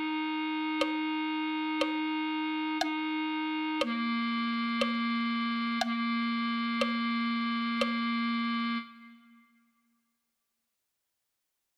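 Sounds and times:
clarinet melody: 0.0 - 9.5.

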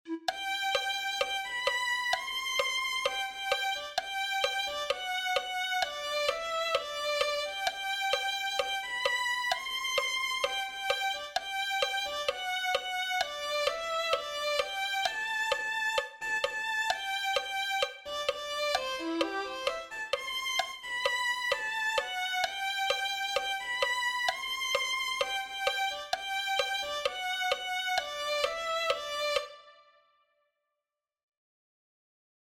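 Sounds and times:
violin: 0.0 - 30.1.

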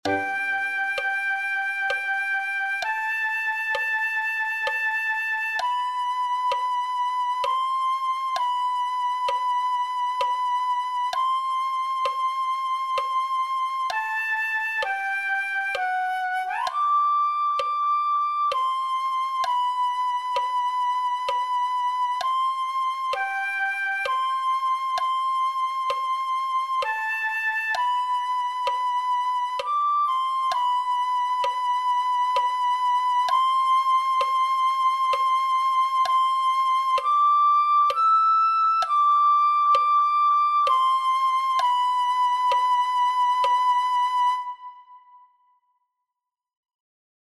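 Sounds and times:
flute: 0.0 - 46.0.

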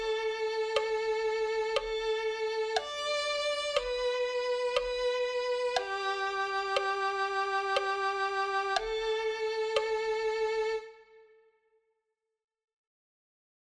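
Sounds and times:
violin: 0.0 - 11.6.

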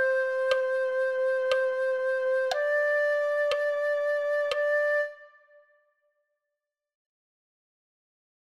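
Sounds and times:
flute: 0.0 - 6.1.

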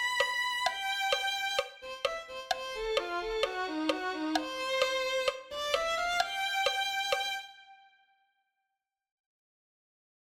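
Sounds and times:
violin: 0.0 - 8.2.

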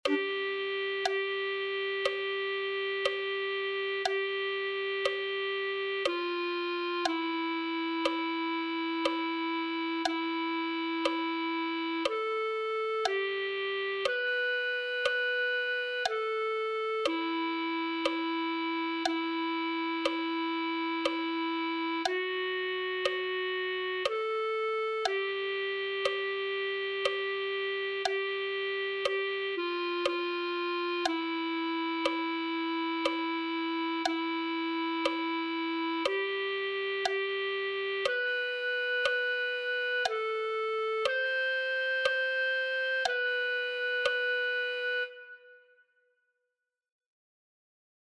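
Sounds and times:
clarinet: 0.0 - 45.9.

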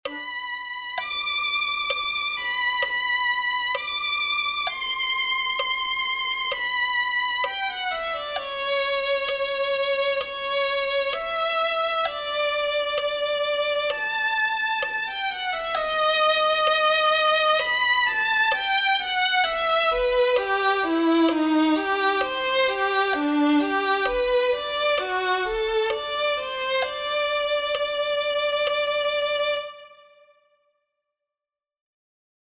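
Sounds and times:
violin: 0.0 - 30.5.

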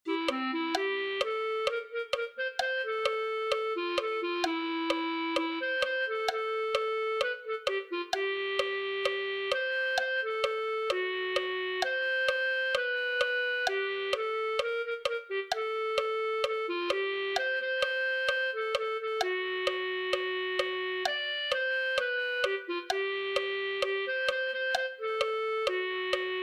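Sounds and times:
clarinet: 0.0 - 26.4.

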